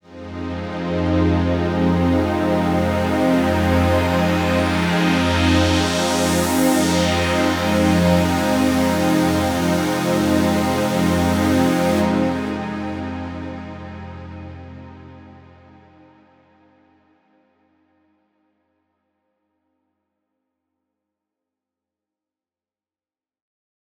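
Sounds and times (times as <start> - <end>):
lo-fi synth pad in F: 0.1 - 16.6.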